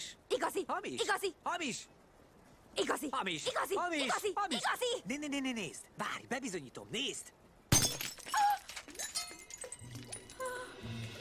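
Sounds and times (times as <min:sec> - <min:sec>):
speech: 0:00.4 - 0:02.0, 0:02.8 - 0:07.4
fake glass ruby being smashed: 0:07.7 - 0:10.4
glass shards tinkling and clinking: 0:07.7 - 0:10.5.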